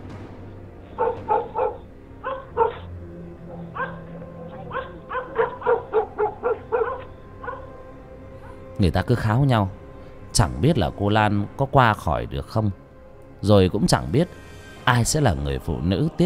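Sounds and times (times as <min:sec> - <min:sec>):
dogs barking at night at the village edge: 0:00.9 - 0:08.8
speech: 0:08.8 - 0:12.8, 0:13.4 - 0:16.2.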